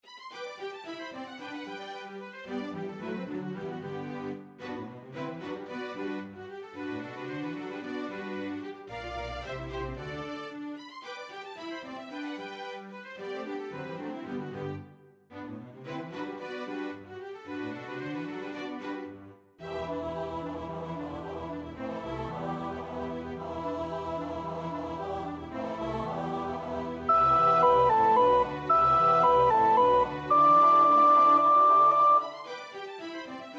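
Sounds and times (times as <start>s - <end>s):
soprano singing: 19.6s - 32.5s.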